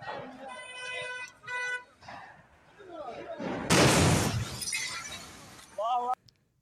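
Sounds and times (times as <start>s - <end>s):
explosion: 3.4s - 5.7s.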